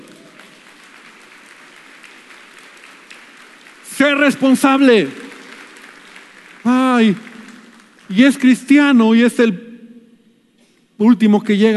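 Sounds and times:
audience applause: 0:00.0 - 0:08.5
speech: 0:04.0 - 0:05.2, 0:06.6 - 0:07.3, 0:08.1 - 0:09.6, 0:11.0 - 0:11.7.

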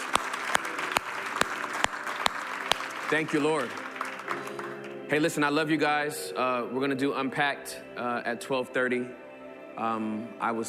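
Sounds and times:
audience applauding: 0:00.0 - 0:05.4
speech: 0:03.1 - 0:04.5, 0:05.1 - 0:09.2, 0:09.8 - 0:10.6.

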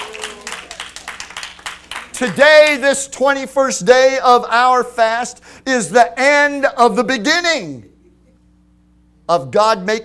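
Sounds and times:
audience clapping hands: 0:00.0 - 0:02.8
speech: 0:02.2 - 0:07.9, 0:09.3 - 0:10.0.

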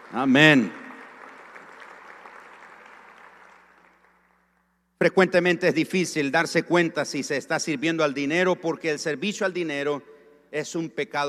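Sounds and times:
audience applause: 0:00.0 - 0:04.5
speech: 0:00.1 - 0:00.8, 0:05.0 - 0:11.2.

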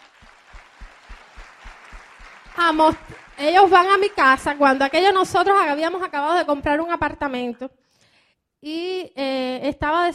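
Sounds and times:
applause: 0:00.0 - 0:06.0
speech: 0:02.6 - 0:07.8, 0:08.6 - 0:10.1.

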